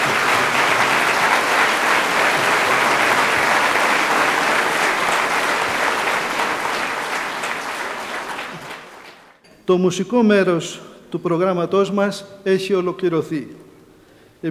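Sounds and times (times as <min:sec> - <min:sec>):
audience applause: 0:00.0 - 0:09.4
speech: 0:09.7 - 0:13.6.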